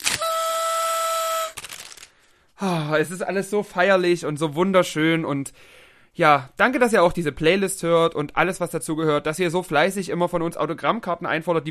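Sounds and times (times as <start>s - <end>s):
toy party horn blowing: 0.0s - 1.6s
speech: 2.6s - 11.6s.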